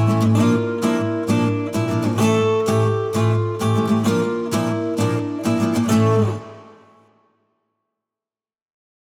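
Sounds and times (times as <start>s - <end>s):
acoustic music: 0.0s - 7.3s.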